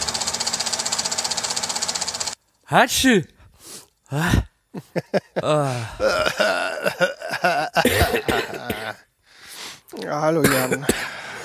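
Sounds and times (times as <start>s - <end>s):
speech: 2.7s - 3.4s, 4.1s - 8.7s, 10.0s - 11.1s
laughter: 4.2s - 9.0s
crumbly chesty cough: 6.1s - 9.0s, 10.4s - 11.4s.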